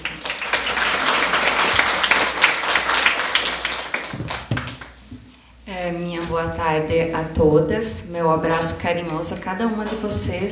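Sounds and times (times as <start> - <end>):
crowd applauding: 0.0 - 5.0
speech: 5.9 - 10.4.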